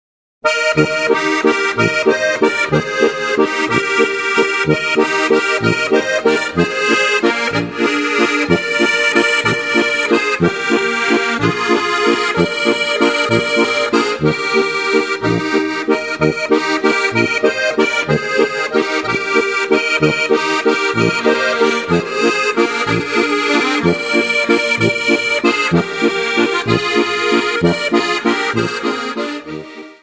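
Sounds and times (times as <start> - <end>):
waltz played on a Steirische Harmonika accordion: 0.4 - 30.0.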